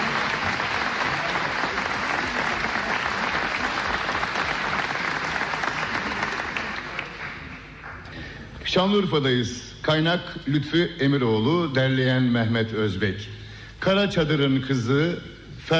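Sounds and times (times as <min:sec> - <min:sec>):
audience applause for a davul drummer and a zurna player: 0:00.0 - 0:08.1
speech: 0:08.7 - 0:15.7.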